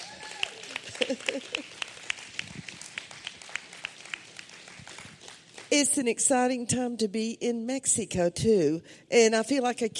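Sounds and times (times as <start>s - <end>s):
audience applause: 0.0s - 5.7s
laughter: 0.6s - 1.9s
speech: 1.0s - 1.8s, 5.7s - 9.9s.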